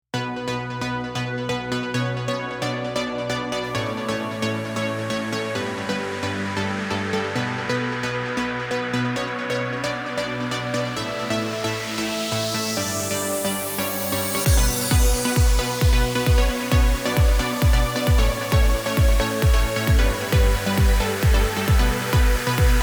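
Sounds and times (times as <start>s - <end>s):
music mix in B minor: 0.0s - 22.8s.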